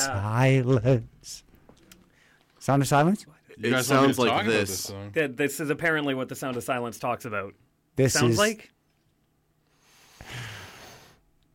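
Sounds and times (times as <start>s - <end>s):
speech: 0.0s - 1.5s, 2.6s - 8.8s
soft breath: 2.0s - 2.6s, 9.6s - 11.3s.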